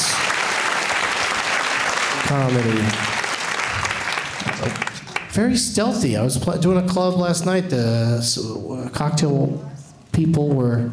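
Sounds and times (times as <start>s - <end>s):
audience applause for the wait staff: 0.0s - 5.4s
speech: 2.2s - 3.2s, 4.6s - 10.9s.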